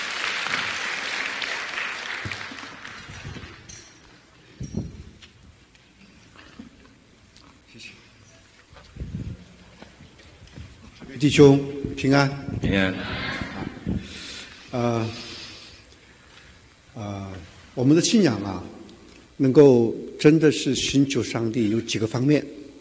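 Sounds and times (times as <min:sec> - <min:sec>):
audience applause: 0:00.0 - 0:03.7
speech: 0:11.2 - 0:13.2, 0:14.8 - 0:15.2, 0:17.8 - 0:18.7, 0:19.4 - 0:22.6.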